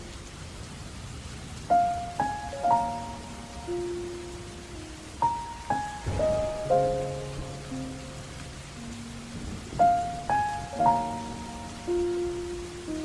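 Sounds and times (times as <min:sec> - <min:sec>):
soft rain: 0:00.0 - 0:13.0
sad piano music: 0:01.7 - 0:13.0.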